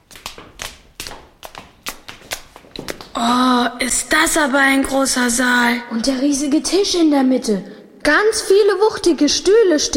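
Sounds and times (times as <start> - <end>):
footsteps climbing stairs: 0.0 - 3.2
speech: 2.8 - 9.9.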